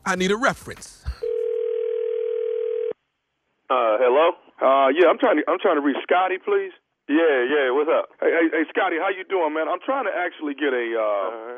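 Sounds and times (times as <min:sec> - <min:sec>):
speech: 0:00.1 - 0:01.1, 0:03.7 - 0:11.5
telephone dial tone: 0:01.2 - 0:03.0.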